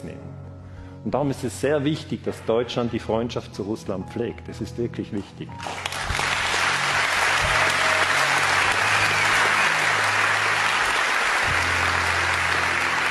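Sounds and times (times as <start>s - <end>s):
speech: 1.0s - 6.0s
audience applause: 5.6s - 13.0s.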